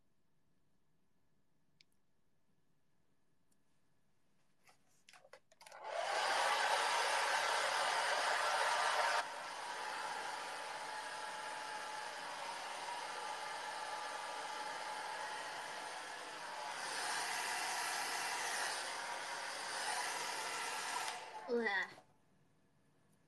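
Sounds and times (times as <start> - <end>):
hair dryers blowing: 5.6 - 21.9.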